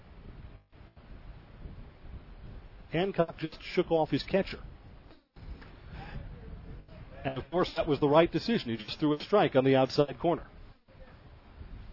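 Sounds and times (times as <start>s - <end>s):
wind blowing across a baseball outfield buffeting the microphone: 0.0s - 3.2s, 4.2s - 8.6s, 10.5s - 11.9s
speech: 2.9s - 4.7s, 7.2s - 10.6s.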